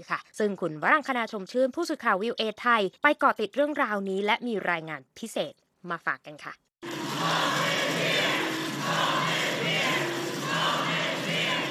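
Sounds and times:
speech: 0.0 - 7.6
crowd of young people shouting slogans in front of the US Supreme Court: 6.9 - 11.6.

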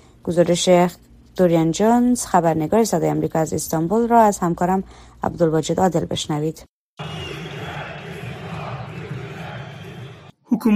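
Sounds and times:
speech: 0.2 - 7.1, 10.6 - 10.7
stadium crowd chanting at football match in Istanbul: 7.0 - 10.4.

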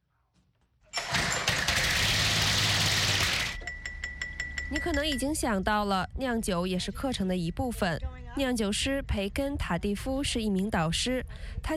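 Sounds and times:
small engine starting after fuel is added: 1.0 - 3.6
speech: 4.7 - 11.7.

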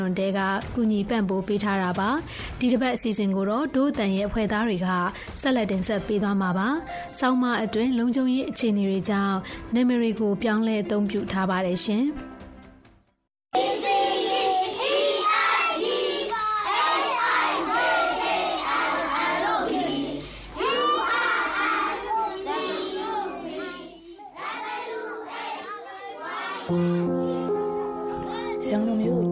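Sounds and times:
speech: 0.0 - 12.3
young children reciting lessons aloud in a monastery school compound: 13.6 - 28.6.

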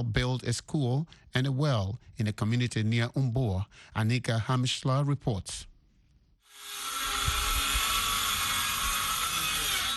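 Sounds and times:
speech: 0.0 - 5.7
power drill roaring: 6.5 - 9.9.

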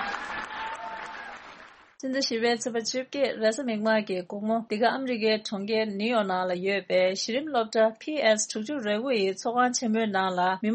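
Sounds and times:
evening audience applauding the artists: 0.0 - 2.0
speech: 2.0 - 10.7.

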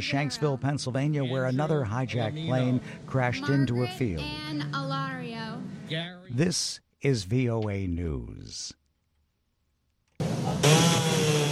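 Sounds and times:
speech: 0.0 - 8.8
power saw cutting during storm cleanup in a Miami trailer park: 10.2 - 11.5.

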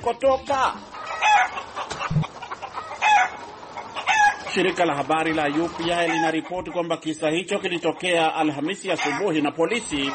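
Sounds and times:
speech: 0.0 - 2.2, 4.5 - 10.1
loose chickens clucking on the streets of Puyallup, Pierce County, Washington: 0.7 - 10.1
rooster crowing in Puyallup, Pierce County, Washington: 1.0 - 3.4, 4.0 - 4.5.

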